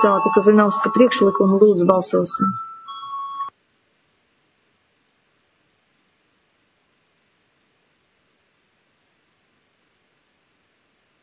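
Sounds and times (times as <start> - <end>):
speech: 0.0 - 2.7
parliament voting bell electronic beep: 0.0 - 3.5.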